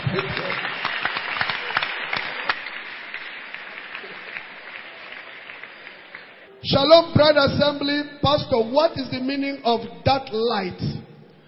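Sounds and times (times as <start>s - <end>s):
audience clapping hands: 0.0s - 6.5s
speech: 0.1s - 0.6s, 6.6s - 11.0s.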